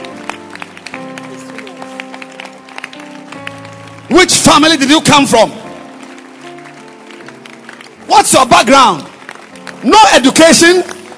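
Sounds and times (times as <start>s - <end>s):
church congregation clapping during a Sunday service: 0.0s - 11.1s
speech: 4.3s - 5.6s, 8.2s - 9.1s, 9.8s - 11.0s.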